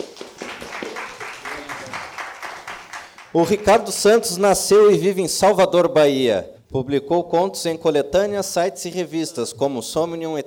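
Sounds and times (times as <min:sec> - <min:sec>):
audience applause: 0:00.0 - 0:03.9
speech: 0:03.3 - 0:10.4.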